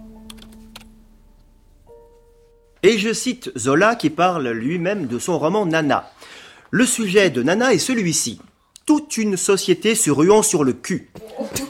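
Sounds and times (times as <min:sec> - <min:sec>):
typing a Google search on a computer keyboard: 0:00.2 - 0:00.9
speech: 0:02.8 - 0:11.6.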